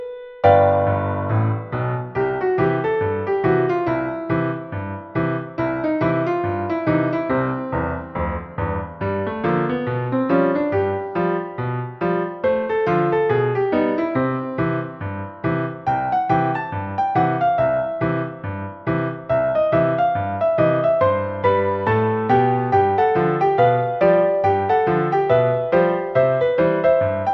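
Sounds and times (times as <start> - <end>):
ragtime music: 0.4 - 27.3.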